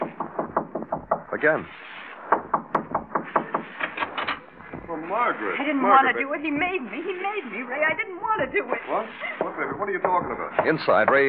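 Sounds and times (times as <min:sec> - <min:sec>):
knocking on a door: 0:00.0 - 0:01.4, 0:02.3 - 0:03.8, 0:04.6 - 0:05.0, 0:09.4 - 0:11.2
speech: 0:01.4 - 0:01.9, 0:04.9 - 0:11.2.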